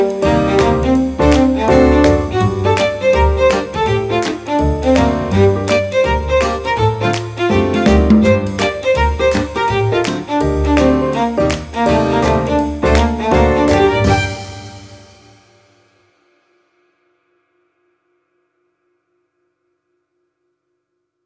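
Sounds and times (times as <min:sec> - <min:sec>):
cheerful string music: 0:00.0 - 0:15.4.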